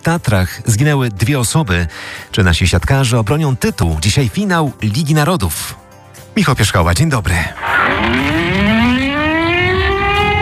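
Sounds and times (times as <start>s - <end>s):
speech: 0.0s - 5.8s, 6.4s - 8.4s
civil defense sirens wailing: 7.6s - 10.4s.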